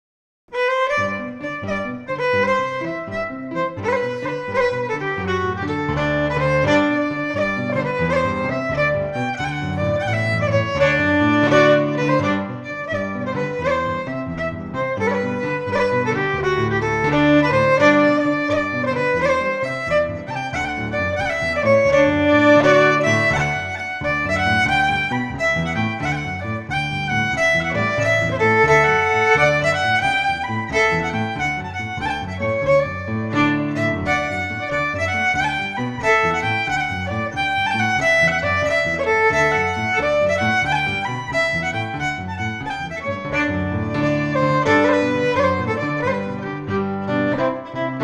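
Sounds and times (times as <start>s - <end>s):
fiddle: 0.5s - 48.0s
piano: 0.5s - 48.0s.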